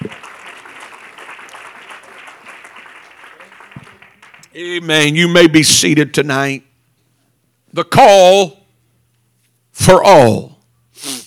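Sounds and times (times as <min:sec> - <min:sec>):
crowd audience clapping hands: 0:00.0 - 0:05.4
speech: 0:04.6 - 0:06.7, 0:07.7 - 0:08.6, 0:09.8 - 0:11.1.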